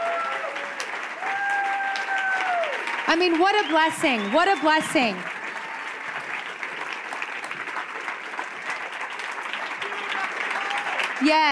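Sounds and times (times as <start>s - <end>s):
audience applause: 0.0s - 11.5s
speech: 3.1s - 5.3s, 11.2s - 11.5s
high sustained whistles: 3.5s - 5.1s.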